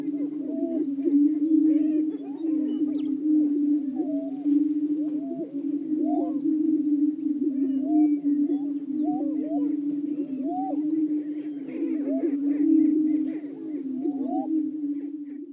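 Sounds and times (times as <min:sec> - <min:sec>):
Greater prairie-chicken chorus booming and whooping: 0:00.0 - 0:15.1.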